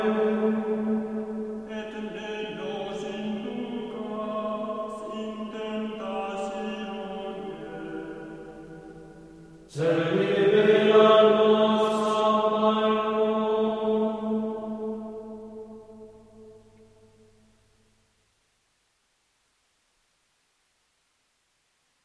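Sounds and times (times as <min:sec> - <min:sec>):
Gregorian chant: 0:00.0 - 0:17.3.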